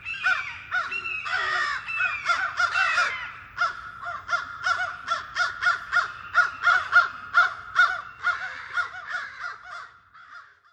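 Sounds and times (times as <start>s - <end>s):
American crows cawing while mobbing a hawk: 0.1s - 10.7s.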